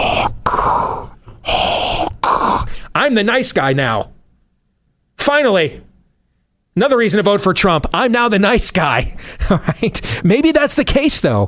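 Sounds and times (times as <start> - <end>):
man's voice imitating heavy, rasping mechanical breathing: 0.0 - 3.0
speech: 3.1 - 4.2, 5.2 - 5.9, 6.8 - 11.4.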